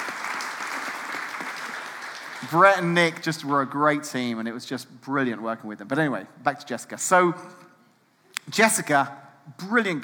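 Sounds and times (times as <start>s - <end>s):
audience applause: 0.0s - 2.9s
speech: 2.4s - 7.6s, 8.5s - 10.0s.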